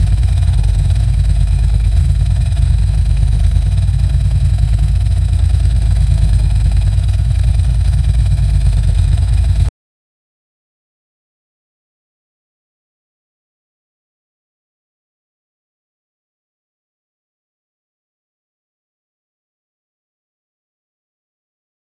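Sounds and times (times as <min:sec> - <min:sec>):
Formula 1 car low deceleration: 0:00.0 - 0:09.7.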